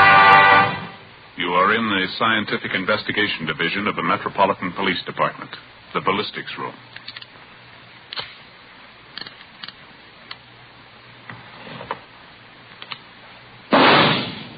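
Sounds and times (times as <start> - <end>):
speech: 1.7 - 7.1
.38 caliber revolver test-fired into a ballistics box: 13.7 - 14.5.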